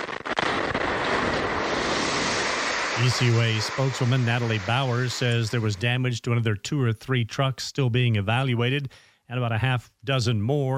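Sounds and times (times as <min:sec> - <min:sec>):
compressed natural gas fueling station explosion: 0:00.0 - 0:06.0
speech: 0:03.0 - 0:10.7.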